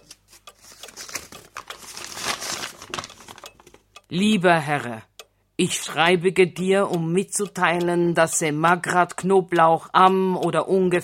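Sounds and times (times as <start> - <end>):
paper letter rustling and crinkling as it is handled: 0.0 - 3.8
speech: 4.1 - 11.0.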